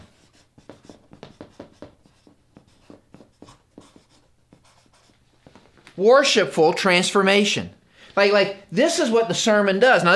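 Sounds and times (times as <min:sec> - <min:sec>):
writing scratches during a sermon: 0:00.0 - 0:05.2
speech: 0:06.0 - 0:10.1.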